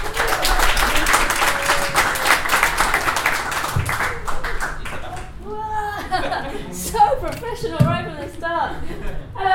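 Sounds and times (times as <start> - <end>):
audience applauding a guest coming onto a stage: 0.0 - 5.4
laughter: 5.5 - 7.1, 8.5 - 9.4.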